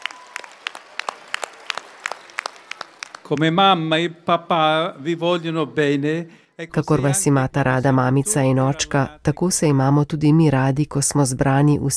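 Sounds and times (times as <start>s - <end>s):
small group applauding: 0.0s - 4.0s
speech: 3.3s - 11.9s.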